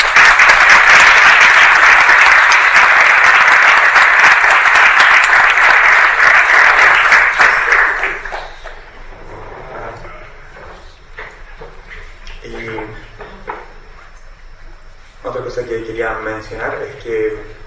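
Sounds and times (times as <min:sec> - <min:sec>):
audience applause: 0:00.0 - 0:08.9
speech: 0:16.0 - 0:17.5.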